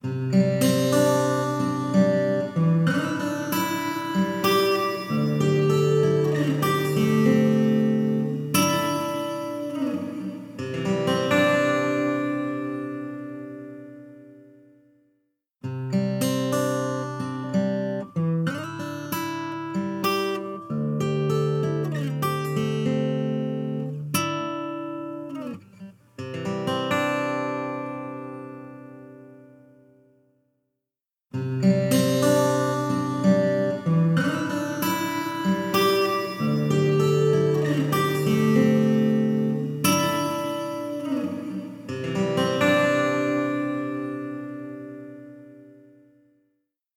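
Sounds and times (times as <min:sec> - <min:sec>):
acoustic music: 0:00.0 - 0:14.9, 0:15.6 - 0:30.2, 0:31.3 - 0:46.3.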